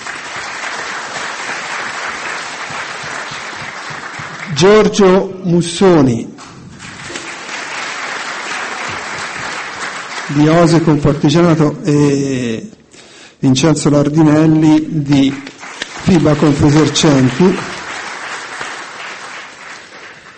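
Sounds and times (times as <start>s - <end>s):
applause: 0.0s - 5.2s, 6.4s - 11.4s, 14.7s - 20.3s
speech: 4.6s - 6.3s, 10.3s - 12.8s, 13.4s - 17.7s.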